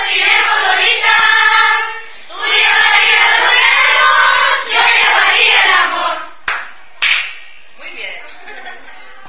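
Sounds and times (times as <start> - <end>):
youth choir singing: 0.0 - 6.4
laughter: 8.2 - 9.2.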